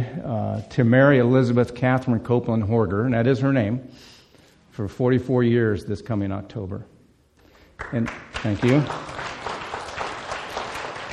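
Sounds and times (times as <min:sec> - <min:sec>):
speech: 0:00.3 - 0:04.1, 0:04.8 - 0:06.9, 0:07.8 - 0:09.3
audience applause: 0:07.8 - 0:11.1.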